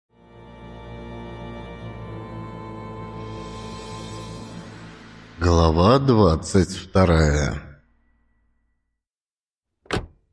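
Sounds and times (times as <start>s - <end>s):
speech: 5.4s - 7.7s
car door slamming shut: 9.9s - 10.2s.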